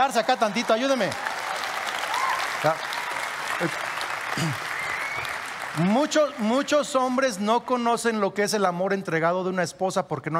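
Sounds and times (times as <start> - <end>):
speech: 0.0 - 1.3, 2.6 - 2.9, 3.6 - 4.7, 5.8 - 10.3
audience applause: 0.0 - 8.2.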